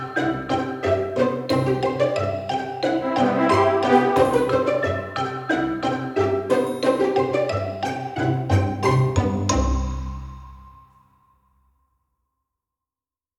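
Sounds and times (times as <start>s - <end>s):
cheerful entertainment pizzicato strings: 0.0s - 10.1s.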